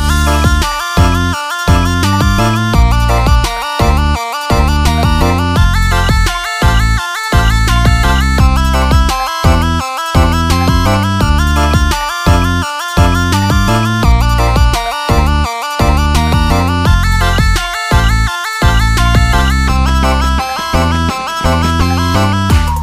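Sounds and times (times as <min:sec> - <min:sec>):
trendy iPhone ringtone: 0:00.0 - 0:22.7.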